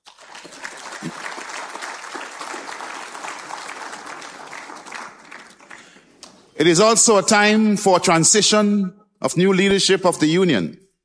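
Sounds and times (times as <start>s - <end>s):
audience applause: 0.0s - 6.5s
speech: 1.0s - 1.2s, 6.6s - 10.8s.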